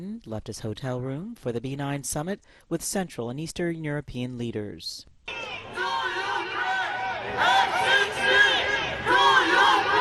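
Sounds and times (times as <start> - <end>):
speech: 0.0 - 6.0, 7.3 - 9.2
protesters chanting along a motorcade route: 5.3 - 10.0.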